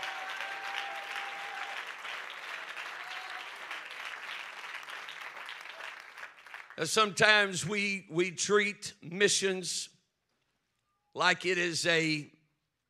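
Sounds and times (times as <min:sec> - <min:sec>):
crowd clapping hands in praise: 0:00.0 - 0:07.2
speech: 0:06.8 - 0:09.9, 0:11.2 - 0:12.4.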